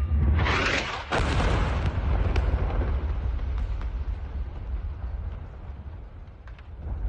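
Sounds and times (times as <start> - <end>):
missile explosion from an airstrike in Choueifat: 0.2 - 5.8.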